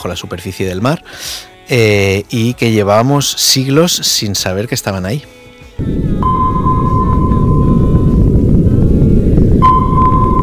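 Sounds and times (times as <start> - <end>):
speech: 0.0 - 6.5
sonar ping: 6.1 - 8.9, 9.5 - 10.4.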